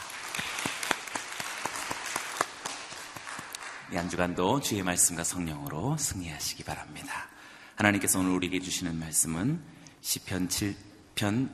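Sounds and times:
audience applause: 0.0 - 3.9
speech: 3.9 - 11.5.

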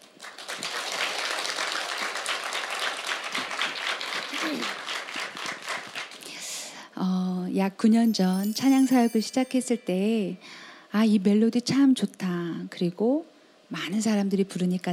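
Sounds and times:
applause: 0.0 - 6.6
speech: 7.6 - 14.9.

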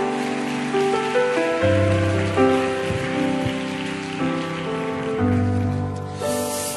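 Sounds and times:
audience applauding in welcome: 0.0 - 6.7.

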